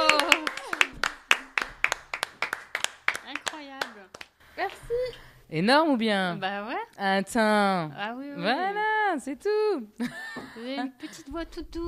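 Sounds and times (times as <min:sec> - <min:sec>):
audience applause: 0:00.0 - 0:03.9
speech: 0:05.5 - 0:11.8.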